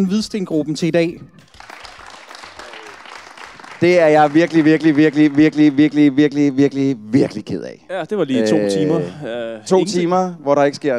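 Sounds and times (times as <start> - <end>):
speech: 0.0 - 1.5, 3.8 - 10.9
audience applause: 1.4 - 6.0.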